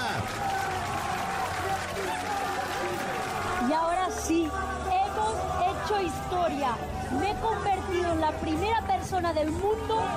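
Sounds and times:
applause: 0:00.0 - 0:06.0
speech: 0:05.9 - 0:10.1.

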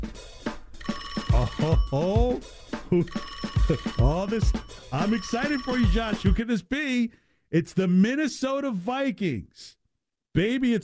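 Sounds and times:
telephone ringing: 0:00.8 - 0:06.4
speech: 0:01.5 - 0:09.8, 0:10.4 - 0:10.8.

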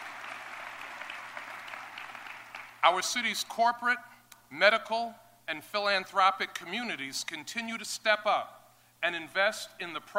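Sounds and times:
audience applause for a civic council at a city announcement: 0:00.0 - 0:02.8
speech: 0:02.8 - 0:10.1.

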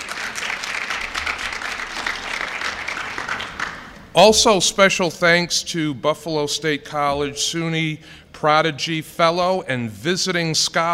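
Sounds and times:
crowd applause: 0:00.0 - 0:04.1
speech: 0:04.2 - 0:10.9.

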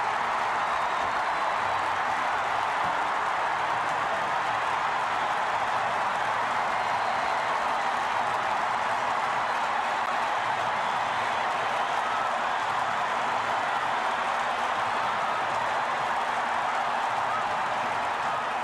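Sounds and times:
huge stadium crowd cheering after grand slam: 0:00.0 - 0:18.6.

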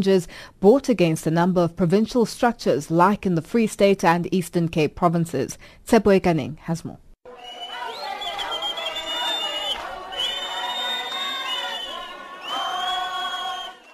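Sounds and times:
speech: 0:00.0 - 0:07.6
crowd cheering to welcome a politician in a packed township hall: 0:07.3 - 0:13.9.

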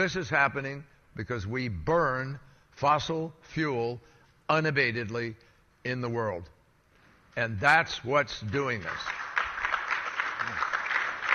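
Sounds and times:
speech: 0:00.0 - 0:06.5, 0:07.4 - 0:09.2
small crowd giving weak golf applause: 0:08.5 - 0:11.3.

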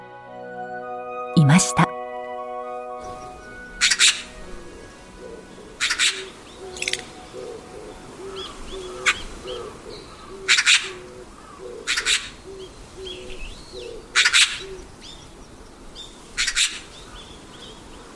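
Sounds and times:
speech: 0:01.5 - 0:02.0
bird cooing: 0:03.1 - 0:15.2
Eurasian magpie calls: 0:03.8 - 0:04.3, 0:05.7 - 0:14.8, 0:16.4 - 0:17.0.

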